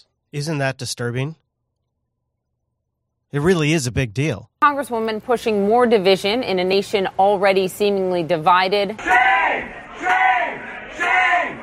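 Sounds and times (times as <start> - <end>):
speech: 0.0 - 1.4, 3.3 - 10.2
protesters yelling shame: 8.9 - 11.6.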